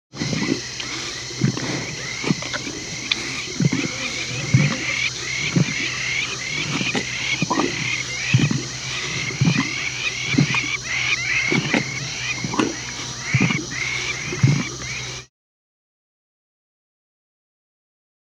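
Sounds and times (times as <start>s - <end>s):
lion licking its paws: 0.2s - 15.1s
high-pitched hum: 0.2s - 15.3s.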